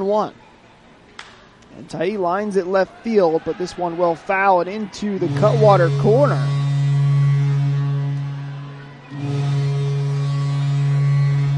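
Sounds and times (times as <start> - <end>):
speech: 0.0 - 0.4, 1.8 - 6.6
ship's foghorn blast: 5.2 - 11.5.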